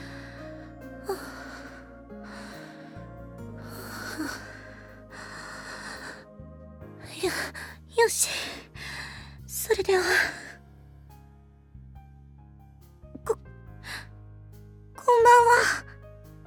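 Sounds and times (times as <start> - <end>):
deep breath: 0.0 - 6.4, 7.2 - 9.5
low tonal background: 0.0 - 16.4
speech: 7.3 - 8.6, 9.7 - 10.4.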